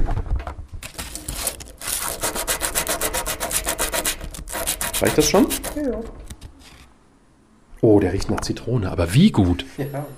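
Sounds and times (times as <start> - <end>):
rubbing a piece of white amber: 0.8 - 6.9
speech: 5.0 - 6.3, 7.8 - 10.1.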